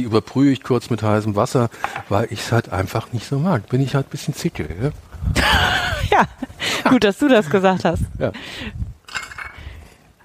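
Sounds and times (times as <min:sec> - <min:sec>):
speech: 0:00.0 - 0:05.5, 0:06.2 - 0:08.8
laughter: 0:05.4 - 0:07.0
small bowls and cutlery clinking: 0:09.1 - 0:10.0.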